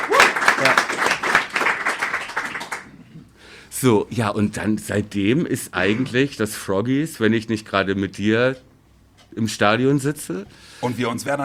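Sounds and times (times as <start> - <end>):
audience applause: 0.0 - 3.1
speech: 3.8 - 8.7, 9.3 - 11.4.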